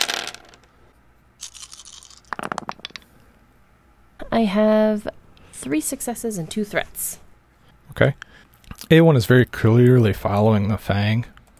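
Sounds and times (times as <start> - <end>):
dice rattling and clattering across a hard surface: 0.0 - 0.7, 1.4 - 3.0
speech: 4.4 - 7.2, 8.0 - 8.2, 8.9 - 11.4.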